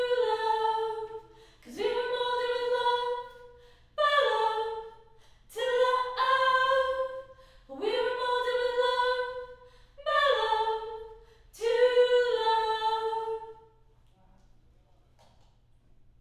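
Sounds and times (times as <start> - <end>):
choir singing high harmony: 0.0 - 3.2, 5.6 - 13.6.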